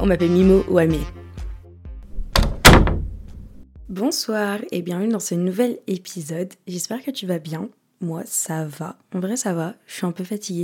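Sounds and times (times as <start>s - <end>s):
speech: 0.0s - 1.2s, 3.9s - 10.6s
heavy door thuds as a door is opened for a visitor: 2.0s - 3.6s.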